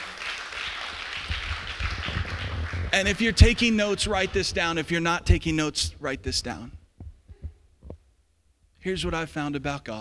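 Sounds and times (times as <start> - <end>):
audience applause: 0.0 - 5.7
speech: 2.9 - 6.8, 8.8 - 10.0.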